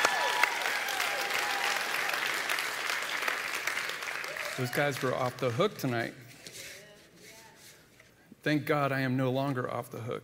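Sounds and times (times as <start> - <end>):
audience applause: 0.0 - 5.8
speech: 4.6 - 6.2, 8.4 - 10.2.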